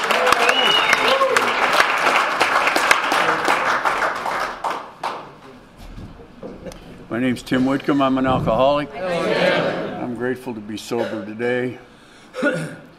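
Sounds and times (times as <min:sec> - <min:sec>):
audience applause welcoming a speaker at a sobriety meeting in Santa Barbara: 0:00.0 - 0:05.6
speech: 0:07.2 - 0:09.3, 0:10.2 - 0:12.8.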